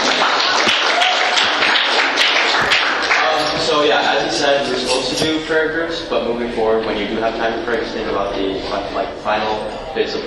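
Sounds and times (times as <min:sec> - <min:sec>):
audience applause: 0:00.0 - 0:04.8
speech: 0:04.3 - 0:10.2.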